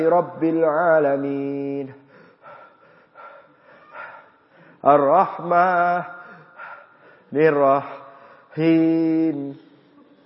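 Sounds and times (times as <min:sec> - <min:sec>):
speech: 0:00.0 - 0:02.0, 0:04.8 - 0:06.2, 0:07.3 - 0:08.0, 0:08.6 - 0:09.7
person imitating gasping for breath during prayer: 0:02.0 - 0:04.8, 0:06.1 - 0:07.3.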